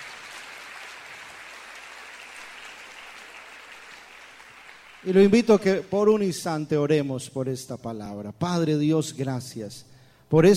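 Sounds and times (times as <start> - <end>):
audience applause: 0.0 - 5.8
speech: 5.0 - 10.5.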